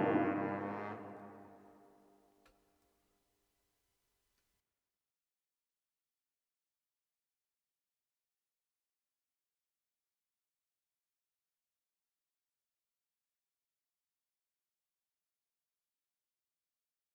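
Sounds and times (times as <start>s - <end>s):
instrument playing speed slurs in B flat at 120 bpm: 0.0s - 1.4s.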